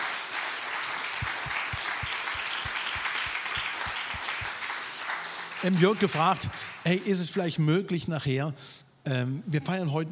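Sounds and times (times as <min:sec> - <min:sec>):
crowd applauding: 0:00.0 - 0:07.0
rhythmic low thumps: 0:01.2 - 0:04.6
speech: 0:05.6 - 0:10.1.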